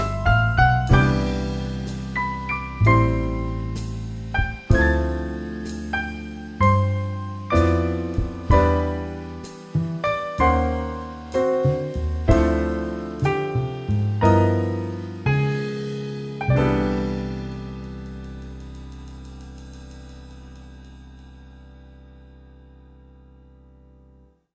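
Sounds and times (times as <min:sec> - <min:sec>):
jazz piano music: 0:00.0 - 0:24.3.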